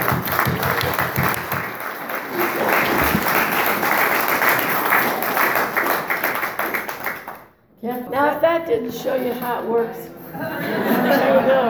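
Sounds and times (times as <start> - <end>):
audience applause: 0.0 - 7.5
laughter: 2.2 - 4.1, 10.1 - 11.6
speech: 8.6 - 11.6.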